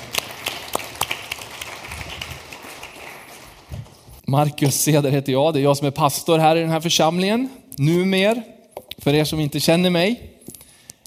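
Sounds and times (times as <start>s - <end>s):
crowd applauding: 0.0s - 4.1s
speech: 4.3s - 10.3s.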